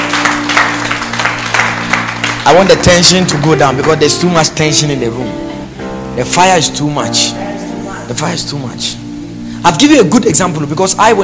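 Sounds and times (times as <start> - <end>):
audience clapping: 0.0 - 5.4
speech: 2.4 - 5.4, 6.2 - 9.0, 9.6 - 11.2.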